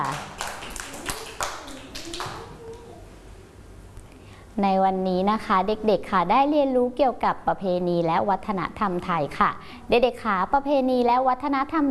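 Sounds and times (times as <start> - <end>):
children clapping: 0.0 - 2.9
speech: 4.6 - 11.8.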